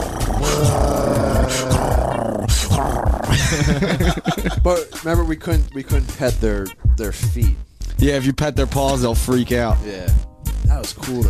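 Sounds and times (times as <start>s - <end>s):
person imitating a cheetah's purr: 0.0s - 4.6s
laughter: 3.3s - 5.4s
speech: 3.5s - 11.2s.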